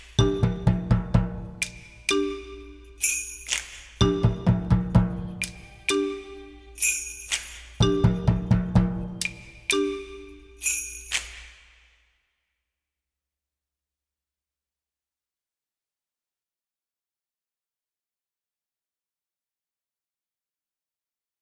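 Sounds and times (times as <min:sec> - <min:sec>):
student percussion: 0:00.0 - 0:12.1.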